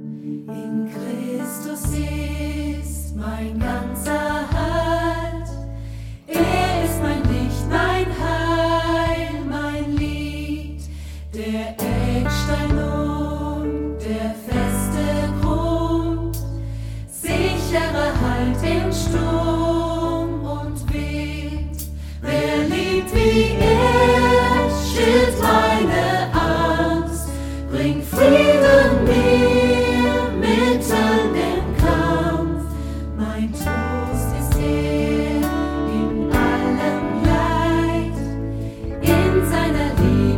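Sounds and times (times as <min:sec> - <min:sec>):
studio choir singing: 0:00.5 - 0:05.7, 0:06.2 - 0:16.4, 0:17.1 - 0:40.3.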